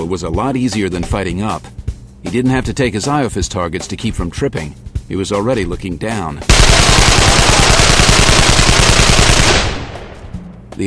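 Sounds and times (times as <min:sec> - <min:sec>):
speech: 0:00.0 - 0:08.5
automatic gunfire fired from the hip: 0:06.5 - 0:10.2.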